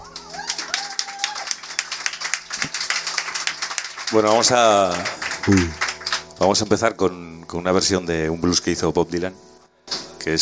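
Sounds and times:
audience applauding: 0.0s - 6.4s
speech: 4.1s - 5.8s, 6.4s - 9.5s, 10.2s - 10.4s.

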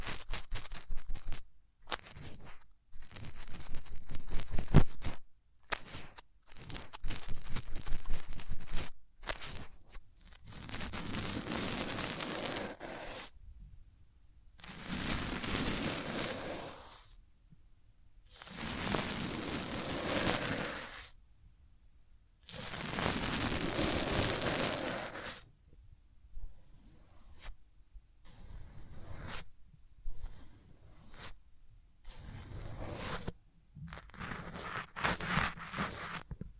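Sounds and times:
hands rubbing close up over the ears: 0.0s - 13.3s, 14.6s - 17.0s, 18.4s - 21.1s, 22.5s - 25.4s, 32.1s - 36.4s.

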